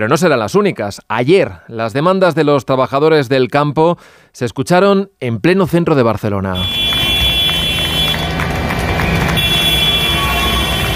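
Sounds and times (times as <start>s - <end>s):
speech: 0.0s - 6.8s
sustained high horn-like tone: 6.6s - 8.4s, 9.1s - 10.9s
crowd clapping for a tractor protest: 6.6s - 10.9s
low tractor engine rumble: 7.0s - 10.9s.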